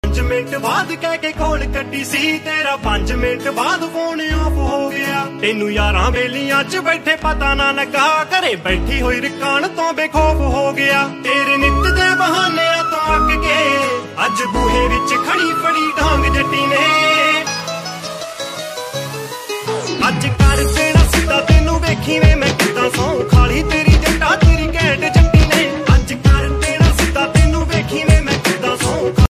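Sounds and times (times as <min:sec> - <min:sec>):
Punjabi music: 0:00.0 - 0:29.2.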